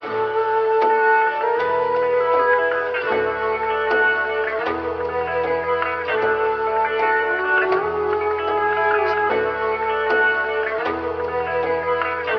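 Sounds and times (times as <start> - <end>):
flute: 0.0 - 12.3
jazz hip hop music loops: 0.0 - 12.3.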